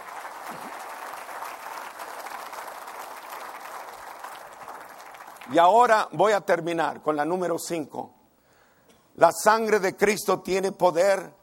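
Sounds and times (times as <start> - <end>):
audience applauding: 0.0 - 5.8
speech: 5.5 - 8.2, 9.2 - 11.4.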